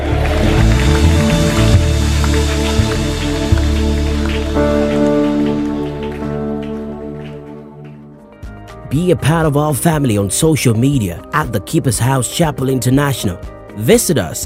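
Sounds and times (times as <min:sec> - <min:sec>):
audience clapping hands: 0:00.0 - 0:09.1
sustained musical chords: 0:00.0 - 0:09.1
speech: 0:09.0 - 0:14.4.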